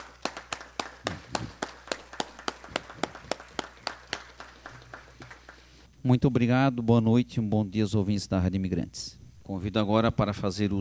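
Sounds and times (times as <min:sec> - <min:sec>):
small group clapping in a steady rhythm: 0:00.0 - 0:05.9
speech: 0:06.0 - 0:10.7.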